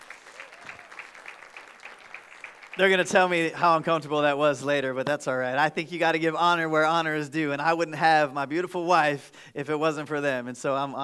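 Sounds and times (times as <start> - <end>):
crowd applauding: 0.0 - 3.4
speech: 2.8 - 11.0.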